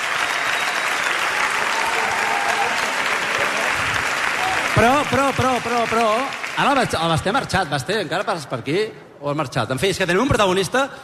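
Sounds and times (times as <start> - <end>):
loud audience applause: 0.0 - 7.2
speech: 4.8 - 11.0.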